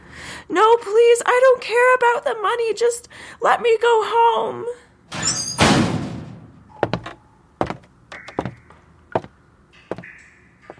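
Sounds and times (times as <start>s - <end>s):
speech: 0.5s - 5.4s
door shutting with heavy thud: 5.1s - 7.1s.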